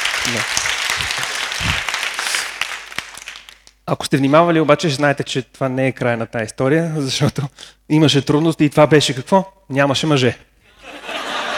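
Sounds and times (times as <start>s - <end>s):
crowd applauding: 0.0s - 3.7s
speech: 0.3s - 1.9s, 3.9s - 11.1s
laughter: 10.8s - 11.5s.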